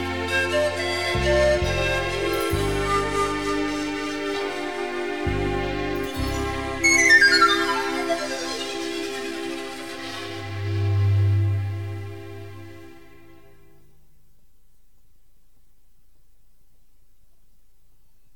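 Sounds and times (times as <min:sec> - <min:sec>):
panpipes: 0:00.0 - 0:12.9.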